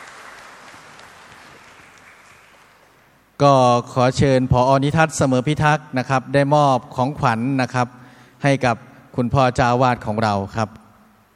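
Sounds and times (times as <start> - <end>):
applause: 0.0 - 3.2
speech: 3.4 - 10.8.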